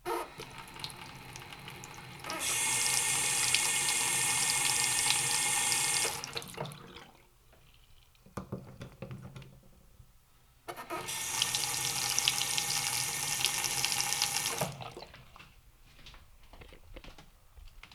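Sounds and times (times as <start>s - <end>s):
faucet running: 0.0s - 7.2s, 10.8s - 15.1s.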